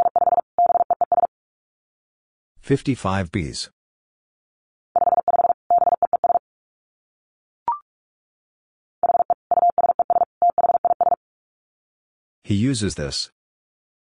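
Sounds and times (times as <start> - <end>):
Morse code beeping tone at 45 wpm: 0.0 - 1.3, 5.0 - 6.4, 9.0 - 11.2
speech: 2.7 - 3.8, 12.5 - 13.4.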